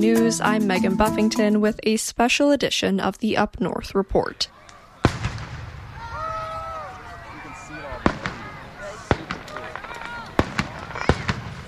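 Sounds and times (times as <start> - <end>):
speech: 0.0 - 4.6
fireworks show exploding: 5.0 - 11.6.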